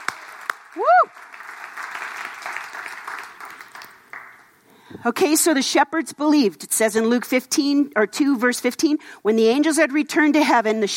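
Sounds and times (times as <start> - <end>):
audience applause: 0.0 - 4.5
speech: 5.0 - 10.9.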